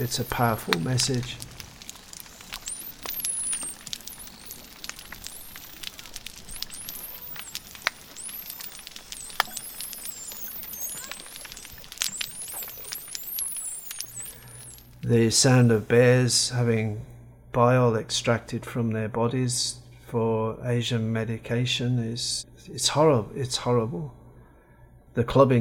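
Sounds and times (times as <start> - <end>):
speech: 0.0 - 1.5, 15.1 - 24.2, 25.2 - 25.5
snapping shrimp crackling underwater: 0.0 - 15.1.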